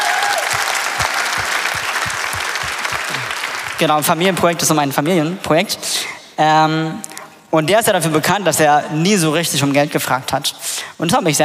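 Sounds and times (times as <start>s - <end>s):
applause: 0.0s - 4.1s
speech: 3.8s - 11.4s.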